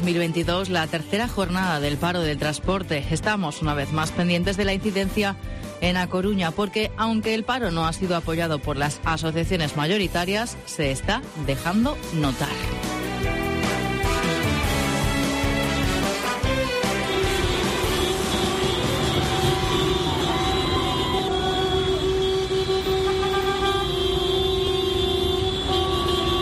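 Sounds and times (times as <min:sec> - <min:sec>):
speech: 0:00.0 - 0:13.4
delivery vans honking horns in convoy: 0:12.6 - 0:26.4.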